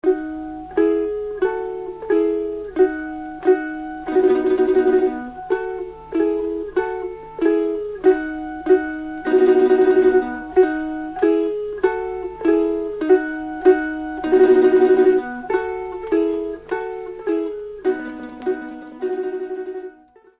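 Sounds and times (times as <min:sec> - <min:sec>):
Croatian kolo folk dance music: 0:00.0 - 0:20.3.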